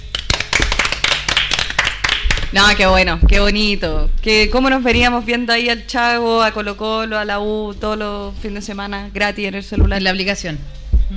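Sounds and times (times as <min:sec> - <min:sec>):
applause, hands clapping: 0:00.0 - 0:03.1
speech: 0:02.5 - 0:11.1.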